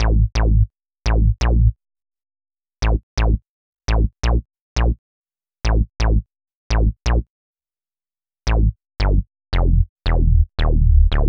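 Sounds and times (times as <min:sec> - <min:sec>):
synth bass: 0:00.0 - 0:01.8, 0:02.8 - 0:05.0, 0:05.7 - 0:07.2, 0:08.5 - 0:11.2.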